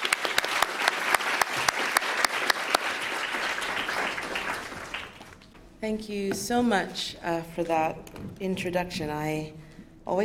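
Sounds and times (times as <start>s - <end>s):
audience applause: 0.0s - 5.6s
speech: 5.8s - 10.2s.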